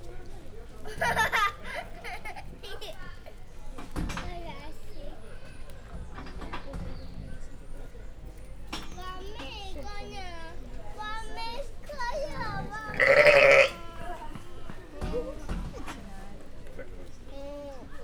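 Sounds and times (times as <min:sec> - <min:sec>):
laughter: 0:00.9 - 0:03.1
zoo visitors in a farmyard: 0:08.1 - 0:17.9.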